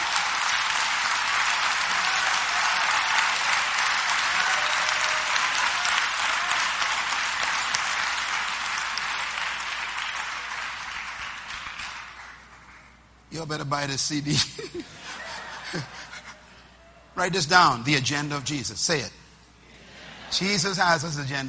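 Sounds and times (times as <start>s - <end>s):
audience applause: 0.0s - 12.9s
speech: 13.4s - 16.0s, 17.2s - 19.2s, 20.3s - 21.4s
laughter: 14.4s - 16.6s.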